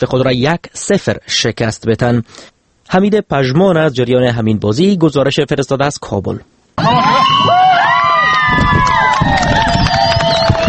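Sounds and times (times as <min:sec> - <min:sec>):
speech: 0:00.0 - 0:07.7
football fans cheering after a goal: 0:06.8 - 0:10.6
whistling: 0:09.4 - 0:10.6.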